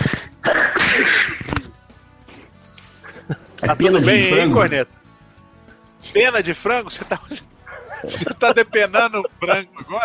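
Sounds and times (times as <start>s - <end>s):
loud sneeze: 0.0s - 1.5s
speech: 3.7s - 5.0s, 6.2s - 10.0s
laughter: 7.0s - 10.0s.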